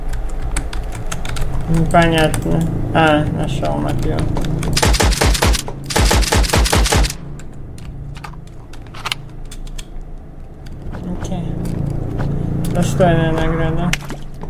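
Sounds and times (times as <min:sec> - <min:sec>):
mechanical clicks and clatter in a video game: 0:00.0 - 0:12.8
speech: 0:01.7 - 0:05.1, 0:12.8 - 0:14.0
gunfire from a gun in a video game: 0:04.8 - 0:07.3.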